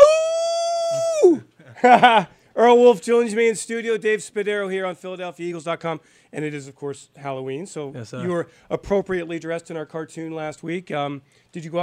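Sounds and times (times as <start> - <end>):
person imitating a wolf howl: 0.0 - 1.4
speech: 1.8 - 11.8.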